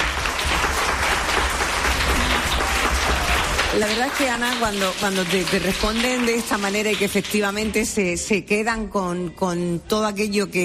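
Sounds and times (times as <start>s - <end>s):
audience applause: 0.0s - 7.5s
speech: 3.8s - 10.6s.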